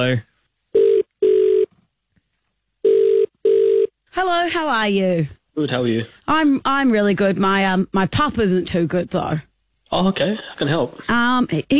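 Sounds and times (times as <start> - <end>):
speech: 0.0 - 0.3, 4.2 - 11.7
telephone ringback tone on outgoing call: 0.8 - 1.7, 2.8 - 3.9.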